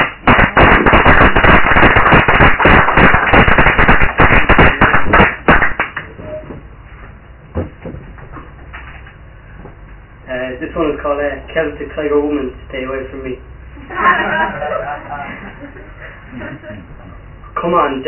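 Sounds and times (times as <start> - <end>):
crowd clapping: 0.0 - 6.1
speech: 10.7 - 15.0, 17.6 - 18.0
laughter: 13.8 - 16.9.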